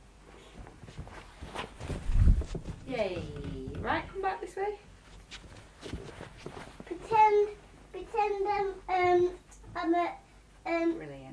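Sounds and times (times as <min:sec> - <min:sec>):
footsteps of a person walking: 0:00.3 - 0:07.1
speech: 0:02.9 - 0:04.9, 0:08.2 - 0:11.3.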